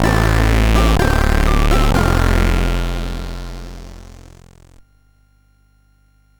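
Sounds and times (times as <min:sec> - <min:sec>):
CSG 8580 sound chip: 0:00.0 - 0:04.8.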